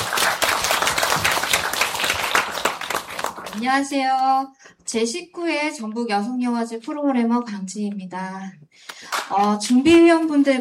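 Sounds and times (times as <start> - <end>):
audience applause: 0.0 - 3.6
speech: 3.6 - 10.5.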